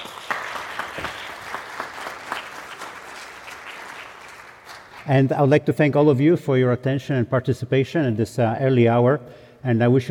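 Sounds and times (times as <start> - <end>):
audience applause: 0.0 - 5.1
speech: 5.1 - 10.0.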